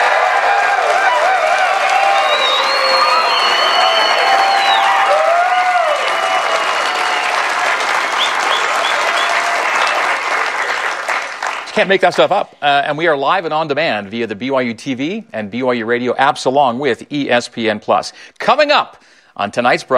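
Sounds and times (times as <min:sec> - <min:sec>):
studio audience at a college football show on the BYU campus in Provo, Utah cheering and applauding: 0:00.0 - 0:12.2
speech: 0:11.8 - 0:19.9.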